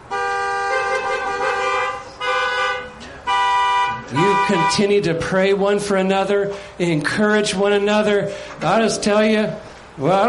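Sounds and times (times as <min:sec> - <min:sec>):
car horns honking: 0:00.0 - 0:06.6
speech: 0:04.1 - 0:10.2.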